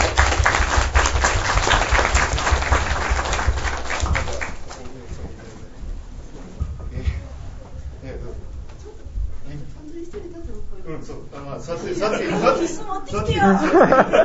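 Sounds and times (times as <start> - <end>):
audience applause: 0.0 - 5.0
laughter: 11.8 - 14.2.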